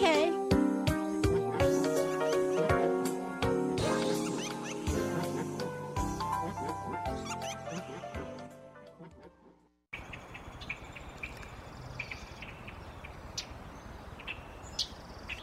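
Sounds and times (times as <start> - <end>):
birds chirping in a wetland: 0.0 - 8.3, 10.0 - 15.4.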